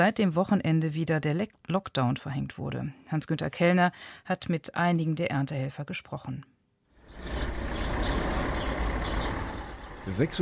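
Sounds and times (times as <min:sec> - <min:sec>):
speech: 0:00.0 - 0:06.5, 0:10.1 - 0:10.4
old minibus engine rumbling while pulling up at a crossing in Lleida: 0:07.0 - 0:10.4.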